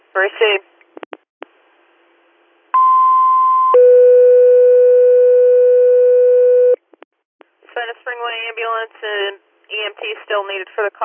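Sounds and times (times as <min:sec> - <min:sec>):
speech: 0:00.2 - 0:00.7, 0:08.8 - 0:11.0
dispatch paging tones: 0:02.8 - 0:06.8.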